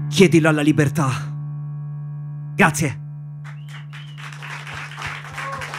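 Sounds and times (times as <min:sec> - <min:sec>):
speech: 0:00.2 - 0:01.3, 0:02.6 - 0:03.0
audience applause: 0:03.5 - 0:05.7.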